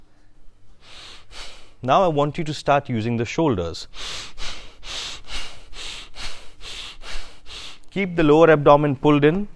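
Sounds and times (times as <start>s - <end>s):
rapid hyperventilation-style breathing through the nose during a breathwork workshop: 0.7s - 1.8s, 3.9s - 7.9s
speech: 1.8s - 4.1s, 7.9s - 9.5s.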